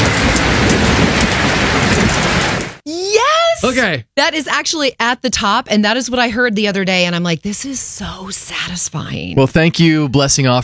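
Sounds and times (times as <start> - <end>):
rain falling: 0.0 - 2.8
speech: 3.8 - 10.6.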